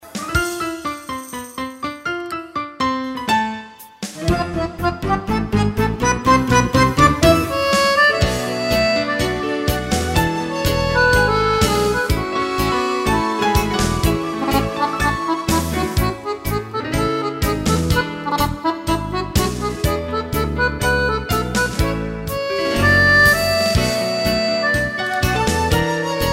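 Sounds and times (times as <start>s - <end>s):
tango music: 2.1s - 26.3s.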